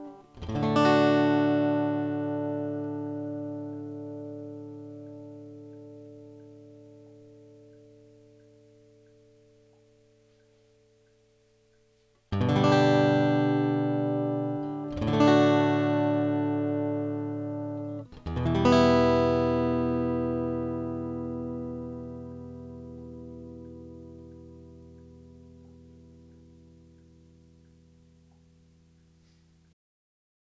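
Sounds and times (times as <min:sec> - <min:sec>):
Taylor acoustic guitar during a cable test: 0:00.0 - 0:11.3, 0:11.9 - 0:29.6.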